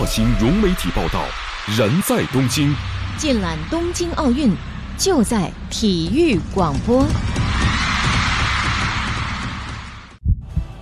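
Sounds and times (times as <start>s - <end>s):
speech: 0.0s - 7.6s
heartbeat sound effect: 6.1s - 10.8s.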